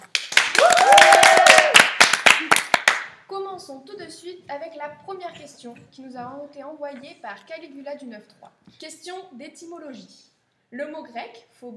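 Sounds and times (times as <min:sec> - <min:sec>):
audience applause: 0:00.0 - 0:03.1
speech: 0:03.7 - 0:11.7.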